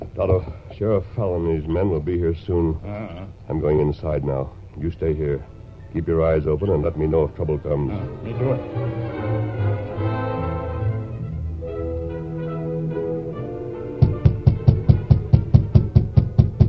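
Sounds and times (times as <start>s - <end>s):
speech: 0.2s - 9.6s
sustained tonal sound: 6.6s - 14.0s
knocking on a rear door: 14.0s - 16.6s.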